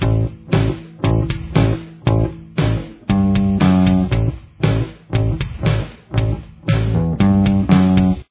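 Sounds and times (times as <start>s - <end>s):
bass: 0.0s - 8.2s.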